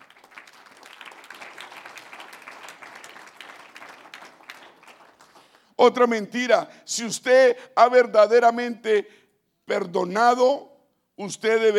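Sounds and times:
audience applause: 0.0s - 5.7s
speech: 5.8s - 11.7s.

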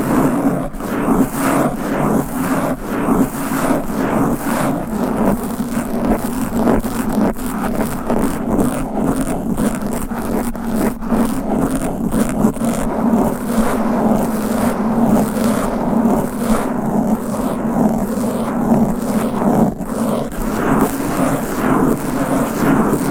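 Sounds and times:
fast aggressive scratching against a microphone: 0.0s - 23.1s
low steady drone: 11.7s - 23.1s.

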